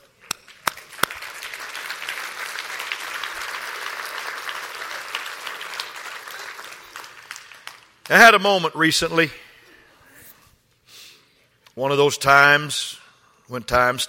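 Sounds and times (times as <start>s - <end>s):
audience applause: 0.4s - 8.1s
speech: 8.1s - 9.4s, 11.8s - 14.0s.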